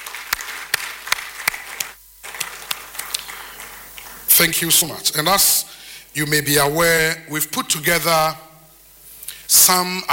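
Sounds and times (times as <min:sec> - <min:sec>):
audience round of applause: 0:00.0 - 0:04.4
speech: 0:04.4 - 0:05.6, 0:06.2 - 0:08.5, 0:09.5 - 0:10.1.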